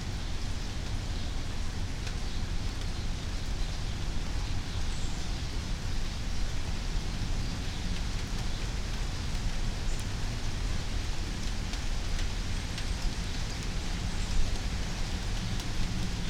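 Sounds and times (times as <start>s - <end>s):
suburban night rain in Meridian Idaho: 0.0s - 16.2s.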